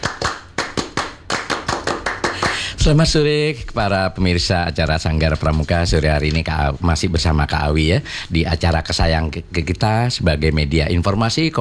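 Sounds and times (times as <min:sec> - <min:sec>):
Pramuka scouts rhythmic group clap: 0:00.0 - 0:03.2, 0:04.8 - 0:06.5
speech: 0:02.8 - 0:11.5.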